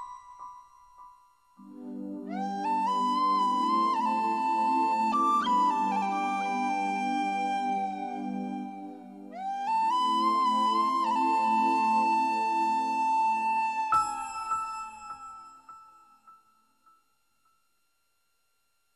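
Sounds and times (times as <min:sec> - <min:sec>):
sweet flute melody: 0:01.6 - 0:16.1.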